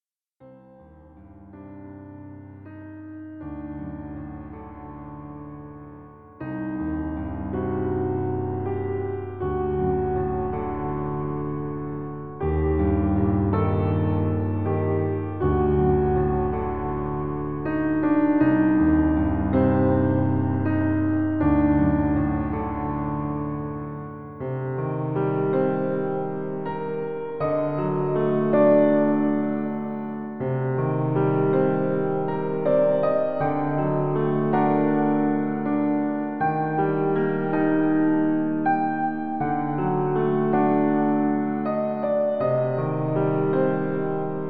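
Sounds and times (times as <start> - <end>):
piano piece: 0.4 - 44.4.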